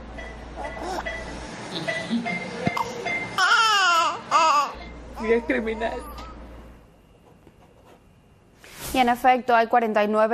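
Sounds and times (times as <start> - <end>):
baby girl laughing: 2.8 - 5.5
speech: 5.2 - 6.3, 9.0 - 10.3.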